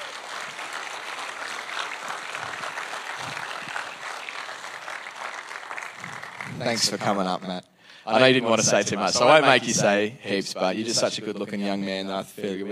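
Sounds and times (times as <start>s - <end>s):
crowd applause: 0.0s - 7.4s
speech: 6.6s - 12.6s.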